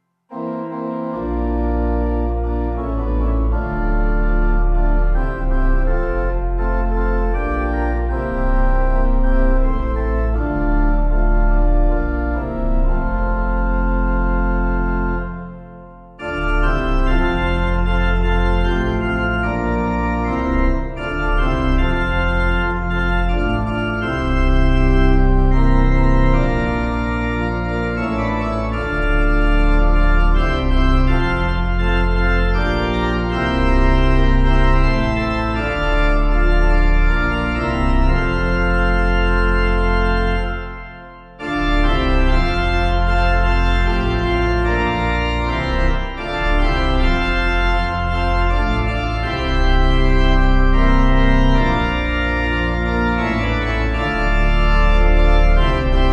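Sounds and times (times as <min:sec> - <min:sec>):
organ: 0:00.0 - 0:56.1.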